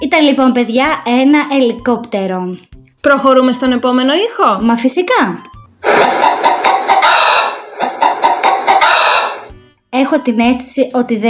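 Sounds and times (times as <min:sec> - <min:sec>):
speech: 0:00.0 - 0:06.5, 0:09.9 - 0:11.2
hen clucking: 0:05.8 - 0:09.5.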